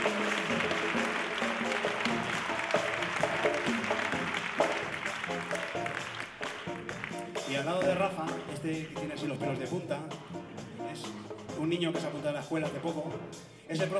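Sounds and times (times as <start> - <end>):
audience applause at a theatre concert in Pinto for a Latin percussion player: 0.0 - 7.5
music playing: 0.0 - 13.9
speech: 8.7 - 13.9.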